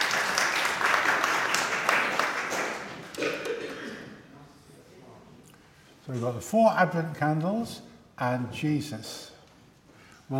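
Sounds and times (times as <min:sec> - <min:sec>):
audience applause: 0:00.0 - 0:03.6
speech: 0:06.1 - 0:09.3.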